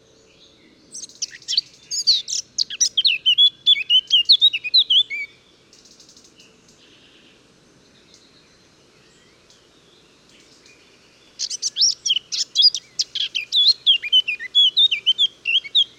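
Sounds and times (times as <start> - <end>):
Eurasian blackcap (Sylvia atricapilla) singing: 0.9 - 5.4, 11.4 - 15.9.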